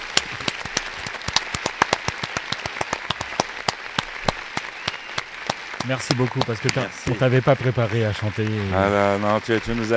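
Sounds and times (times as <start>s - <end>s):
applause: 0.0s - 9.9s
speech: 5.8s - 9.9s.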